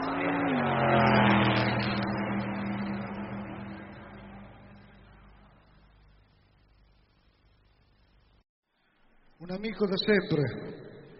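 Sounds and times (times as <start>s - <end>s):
race car engines revving before the start of the 31st Palmia race: 0.0s - 6.3s
speech: 9.5s - 10.8s.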